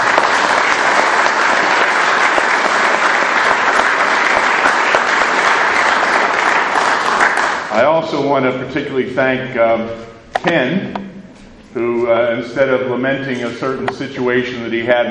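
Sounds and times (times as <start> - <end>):
audience applause: 0.0 - 8.2
speech: 8.0 - 11.0, 11.7 - 15.0.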